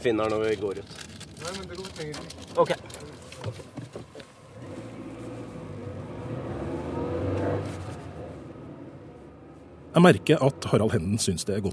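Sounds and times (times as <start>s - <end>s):
speech: 0.0s - 3.7s, 10.0s - 11.7s
road rumble: 0.0s - 11.7s
taxi engine drone: 4.2s - 11.7s.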